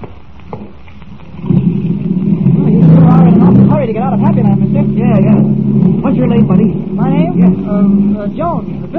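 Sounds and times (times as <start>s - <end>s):
car engine starting and pulling away: 1.3s - 8.9s
speech: 4.0s - 8.9s.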